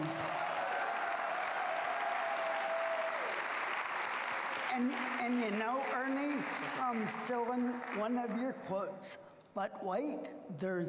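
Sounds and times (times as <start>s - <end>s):
audience applause: 0.0s - 8.0s
speech: 4.8s - 10.8s.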